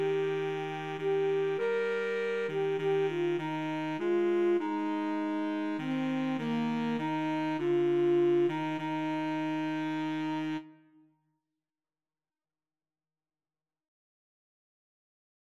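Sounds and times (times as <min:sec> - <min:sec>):
woodwind trio with saxophone playing: 0:00.0 - 0:10.8.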